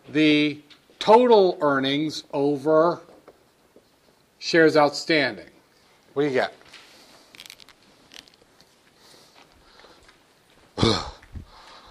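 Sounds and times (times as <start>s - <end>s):
speech: 0.1s - 3.1s, 4.4s - 5.5s, 6.2s - 6.6s, 10.8s - 11.1s
person burping after dinner: 10.8s - 11.3s.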